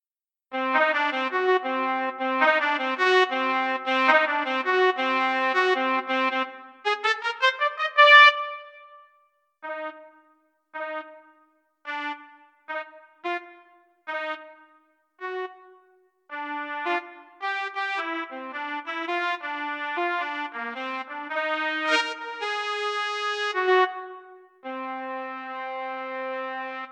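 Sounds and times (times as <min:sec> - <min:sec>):
trumpet: 0:00.5 - 0:26.9.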